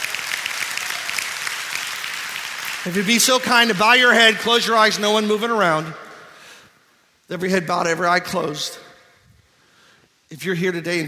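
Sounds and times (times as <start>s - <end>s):
audience clapping hands: 0.0s - 4.2s
speech: 2.8s - 6.0s, 7.3s - 8.8s, 10.3s - 11.0s.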